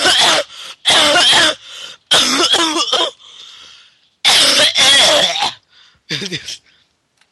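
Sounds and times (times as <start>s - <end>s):
person coughing: 0.0s - 3.2s, 4.3s - 6.6s.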